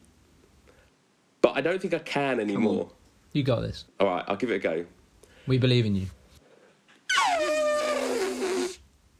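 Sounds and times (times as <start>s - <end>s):
speech: 1.6s - 6.2s
person imitating an elephant's trumpet: 7.1s - 8.8s.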